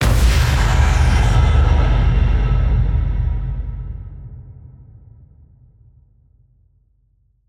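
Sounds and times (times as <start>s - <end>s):
explosion: 0.0s - 5.6s.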